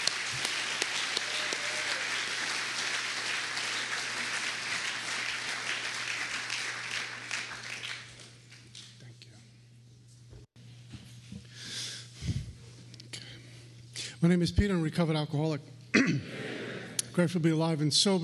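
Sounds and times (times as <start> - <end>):
audience round of applause: 0.0 - 8.4
speech: 14.2 - 16.4, 17.2 - 18.2.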